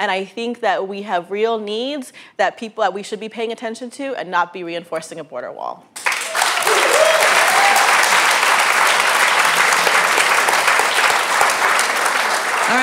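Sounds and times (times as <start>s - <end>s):
speech: 0.0s - 6.1s
audience applause: 6.0s - 12.8s
whoop: 6.2s - 8.2s.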